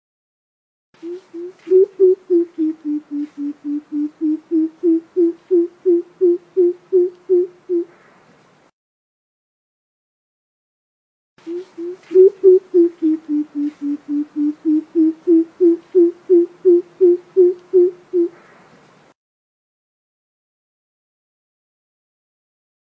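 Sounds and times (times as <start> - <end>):
coucal giving deep hollow hoots: 1.0 - 7.9, 11.4 - 18.4.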